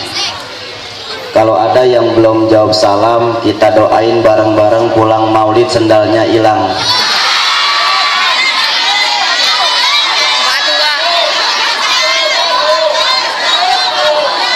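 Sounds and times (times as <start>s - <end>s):
speech: 1.3s - 7.0s
large crowd at a maulid gathering beside Kalimalang shouting back at the speaker: 6.7s - 14.5s.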